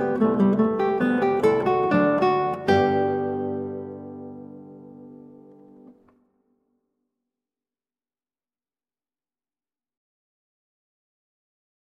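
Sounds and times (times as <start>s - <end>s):
classical guitar minuet: 0.0s - 6.3s.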